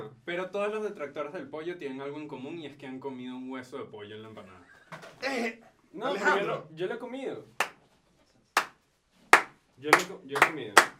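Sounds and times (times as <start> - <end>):
speech: 0.3 - 7.6, 9.8 - 10.9
slow clap: 7.6 - 7.9, 8.6 - 10.9.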